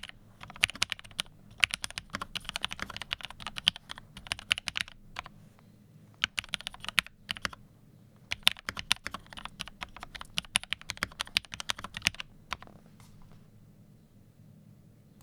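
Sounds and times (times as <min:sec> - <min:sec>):
typing test on Lepold FC 980 M Mod with Mx Black Film Lube: 0:00.0 - 0:05.4, 0:06.2 - 0:07.6, 0:08.2 - 0:13.4.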